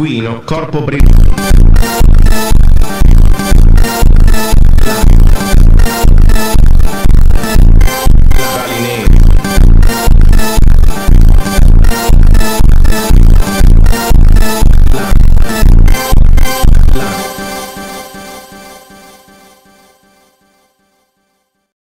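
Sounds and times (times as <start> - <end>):
slow funk superbass with reverb: 1.0 - 18.1.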